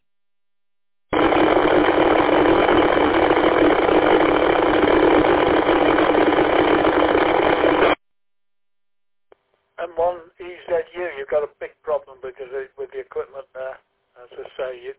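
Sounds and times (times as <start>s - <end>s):
helicopter landing or taking off: 1.1s - 8.0s.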